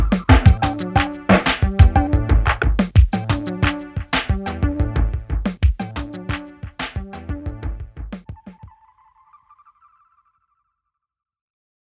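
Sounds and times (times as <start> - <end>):
Drumtraks drum machine beat: 0.0 - 8.7.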